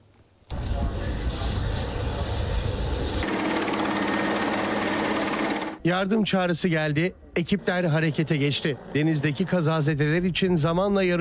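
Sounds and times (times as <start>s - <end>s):
helicopter hovering to rescue the crew of a sinking ship in the Deniz Aslanı 2026 naval exercise: 0.6s - 5.8s, 7.4s - 10.0s
speech: 5.8s - 11.1s.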